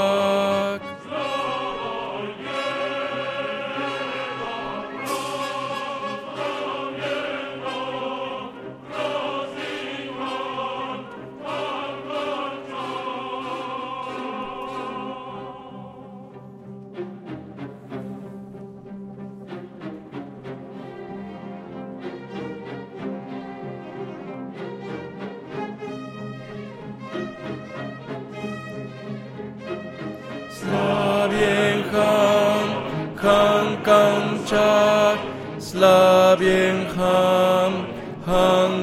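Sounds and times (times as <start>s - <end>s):
bass voices singing opera dance piece: 0.0s - 16.4s, 30.5s - 38.8s.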